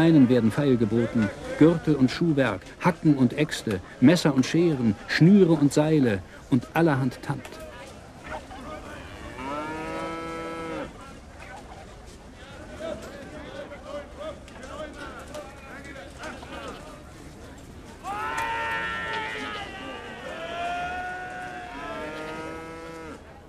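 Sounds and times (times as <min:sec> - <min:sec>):
speech: 0:00.0 - 0:07.6
murmuring voices of a market crowd: 0:00.0 - 0:23.4
cattle mooing at a market: 0:09.0 - 0:10.9, 0:21.7 - 0:23.2.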